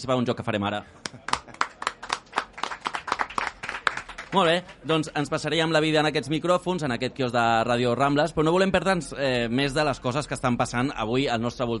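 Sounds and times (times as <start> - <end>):
speech: 0.0 - 1.3, 4.3 - 11.7
small crowd applauding performers at a radio kiosk event on the Rambles: 1.0 - 5.1.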